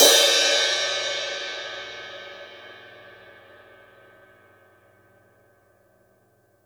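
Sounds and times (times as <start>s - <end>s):
crash cymbal on a drum kit: 0.0s - 4.4s.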